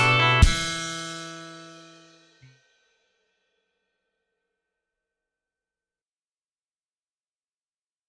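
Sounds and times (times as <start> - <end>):
acoustic rock music: 0.0 - 2.2.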